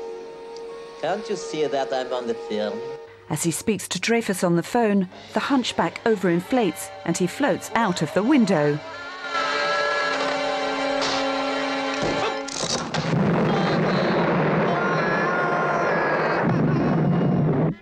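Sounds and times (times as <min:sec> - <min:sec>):
music-like tonal sound: 0:00.0 - 0:03.2, 0:04.7 - 0:12.6
speech: 0:01.0 - 0:09.1
dynamite explosion in a slapstick film scene: 0:12.6 - 0:17.8
loud rumbling and roaring debris noise: 0:12.7 - 0:15.0.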